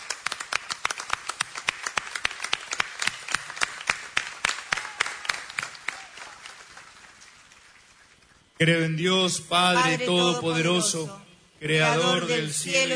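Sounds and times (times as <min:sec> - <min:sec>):
audience applause: 0:00.0 - 0:08.1
speech: 0:08.6 - 0:12.9.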